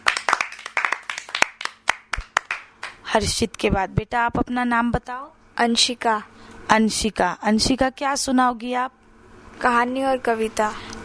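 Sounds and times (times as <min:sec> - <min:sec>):
children clapping for a classmate: 0:00.0 - 0:03.0
speech: 0:03.1 - 0:09.0, 0:09.6 - 0:11.0.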